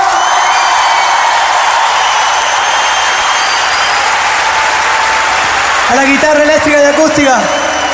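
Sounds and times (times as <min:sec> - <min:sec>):
audience applause: 0:00.0 - 0:07.9
speech: 0:05.9 - 0:07.6.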